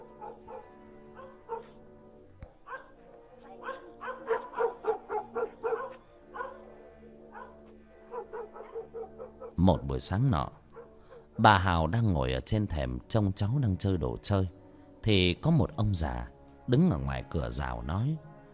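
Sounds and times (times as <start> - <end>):
dog barking and yapping: 0.0 - 1.8, 2.6 - 6.7, 7.3 - 9.6, 10.7 - 11.4
speech: 9.6 - 10.6, 11.4 - 18.3.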